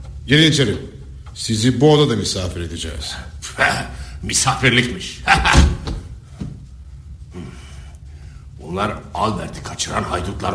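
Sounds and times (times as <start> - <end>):
speech: 0.3 - 5.7, 8.7 - 10.5
door being opened: 5.3 - 6.5.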